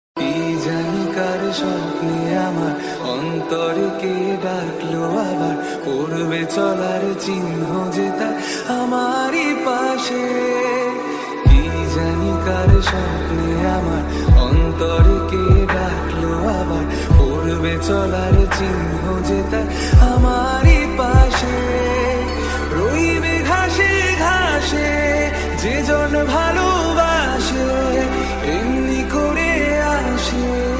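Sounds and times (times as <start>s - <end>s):
sad Bengali song ringtone: 0.2s - 30.7s.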